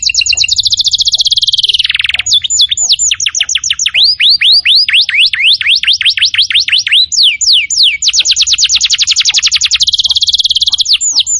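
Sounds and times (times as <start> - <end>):
canary song: 0.0 - 11.3.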